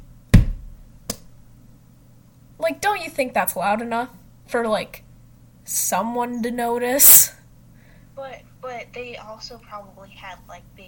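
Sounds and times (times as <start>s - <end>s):
knocking on a wall: 0.4s - 0.8s
speech: 2.6s - 5.0s, 5.7s - 7.3s, 9.0s - 10.8s.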